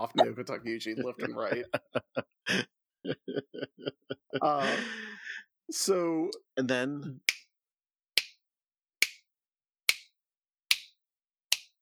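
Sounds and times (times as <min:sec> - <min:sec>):
speech: 0:00.1 - 0:03.7, 0:04.4 - 0:05.1, 0:05.7 - 0:07.4
laughter: 0:00.1 - 0:05.4
finger snaps: 0:08.2 - 0:08.4, 0:09.0 - 0:09.2, 0:09.9 - 0:10.1, 0:10.7 - 0:11.8.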